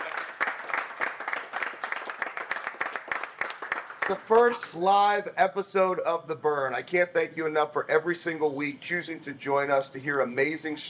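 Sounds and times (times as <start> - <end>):
audience applause: 0.0 - 4.6
speech: 4.1 - 10.8.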